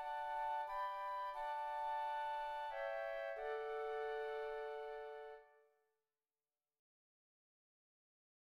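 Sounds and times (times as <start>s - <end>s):
flute playing a hymn: 0.0s - 5.6s.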